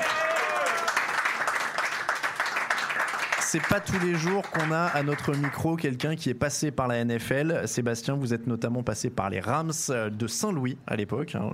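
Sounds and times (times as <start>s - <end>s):
audience applause: 0.0s - 5.8s
speech: 3.5s - 11.5s.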